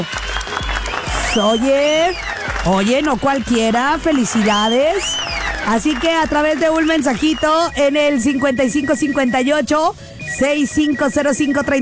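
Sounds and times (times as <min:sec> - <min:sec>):
speech: 0:00.0 - 0:00.7, 0:01.3 - 0:11.8
crowd applause: 0:00.0 - 0:07.7.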